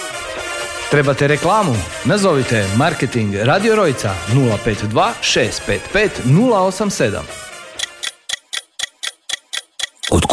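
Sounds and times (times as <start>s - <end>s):
speech: 0.9s - 7.4s
clock ticking as a radio time signal: 7.8s - 10.3s.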